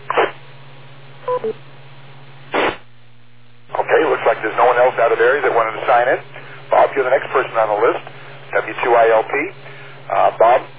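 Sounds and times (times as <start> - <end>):
static noise rush: 0.0 - 0.6, 2.4 - 10.7
low hum and faint hiss: 0.0 - 10.7
short electronic beeps: 1.2 - 1.6
speech: 1.4 - 1.7, 7.0 - 10.7.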